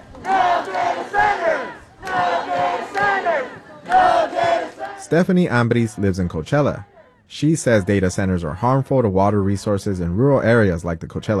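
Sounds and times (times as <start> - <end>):
protesters chanting at City Hall: 0.0 - 8.7
speech: 5.1 - 11.3.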